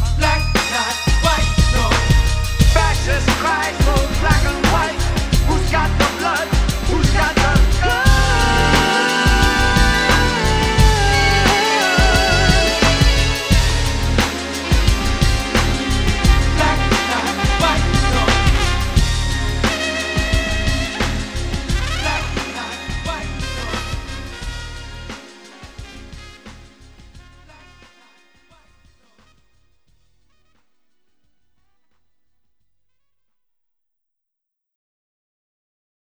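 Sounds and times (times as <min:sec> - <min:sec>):
radio music mix: 0:00.0 - 0:28.7.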